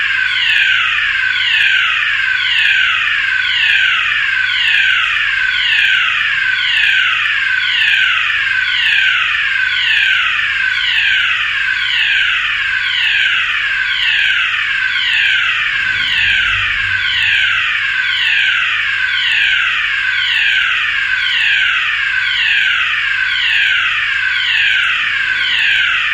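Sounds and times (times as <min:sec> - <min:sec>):
siren: 0:00.0 - 0:26.1.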